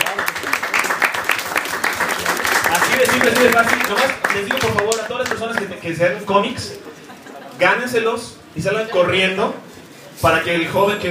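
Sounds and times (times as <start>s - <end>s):
audience applause at a Marvel comics talk: 0.0s - 5.7s
speech: 3.2s - 6.9s, 7.6s - 9.6s, 10.2s - 11.0s
laughter: 6.8s - 7.8s.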